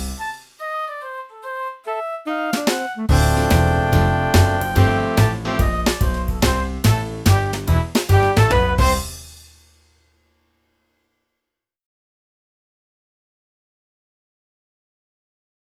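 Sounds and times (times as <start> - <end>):
clarinet: 0.1 - 7.6, 8.1 - 9.1.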